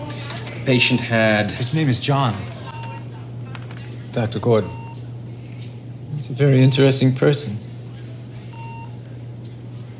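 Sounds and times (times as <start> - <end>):
heart monitor beeping: 0.0 - 9.4
laughter: 0.0 - 9.9
speech: 0.7 - 2.6, 4.2 - 4.8, 6.2 - 7.7.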